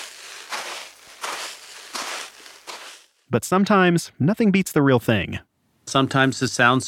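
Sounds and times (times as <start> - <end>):
footsteps crunching in sand pit imitating steps in snow: 0.0 - 3.3
speech: 3.3 - 6.8.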